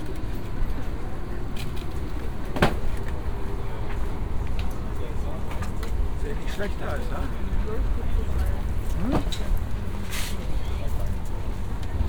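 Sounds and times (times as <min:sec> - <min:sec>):
fruit stand ambience at a market square: 0:00.0 - 0:12.0.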